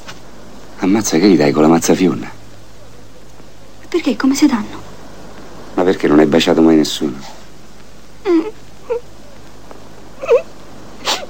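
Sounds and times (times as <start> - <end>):
speech: 0.8 - 2.4, 4.0 - 4.9, 5.8 - 7.4, 8.2 - 9.0
woman crying in wailing sobs: 8.2 - 9.1, 10.2 - 11.2.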